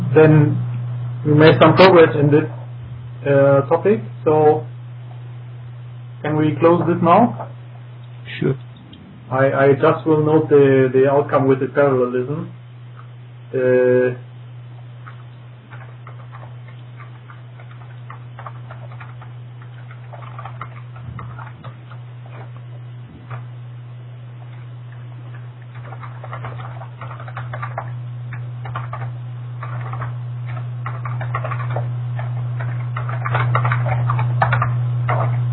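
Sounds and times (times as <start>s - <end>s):
speech: 0.2s - 0.6s, 1.2s - 2.6s, 3.2s - 4.7s, 6.2s - 7.6s, 8.3s - 8.7s, 9.3s - 12.6s, 13.5s - 14.2s
loud keyboard typing: 15.0s - 23.5s, 25.3s - 35.5s.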